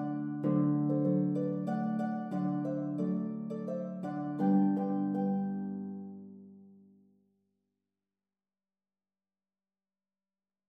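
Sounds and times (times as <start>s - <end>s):
harp duet dance melody with variations: 0.0s - 6.4s.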